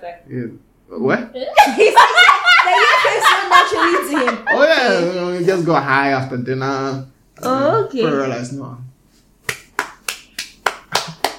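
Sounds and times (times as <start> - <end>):
speech: 0.1 - 8.9
laughter: 1.6 - 5.2
hand clapping: 9.4 - 11.3.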